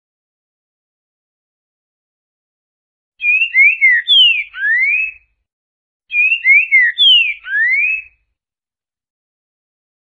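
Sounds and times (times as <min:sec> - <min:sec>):
green-winged saltator singing slurred falling whistles: 0:03.2 - 0:05.3, 0:06.1 - 0:08.2.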